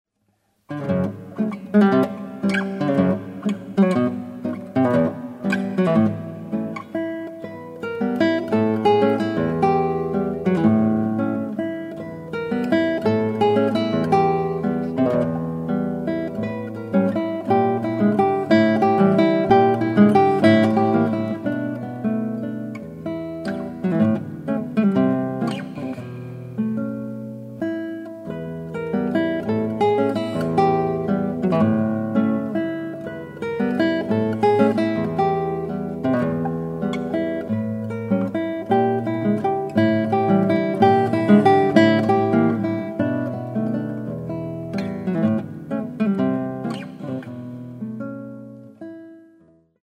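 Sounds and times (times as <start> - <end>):
romantic guitar music: 0.5 - 49.8.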